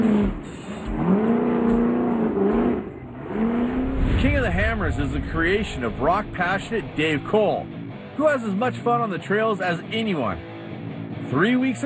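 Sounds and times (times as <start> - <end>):
off-road race vehicle engine revving: 0.0 - 7.8
speech: 4.8 - 10.5, 11.3 - 11.8.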